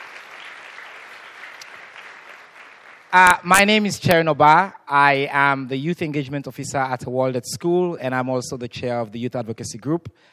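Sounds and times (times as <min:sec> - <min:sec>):
audience applause: 0:00.0 - 0:03.2
speech: 0:03.1 - 0:10.3.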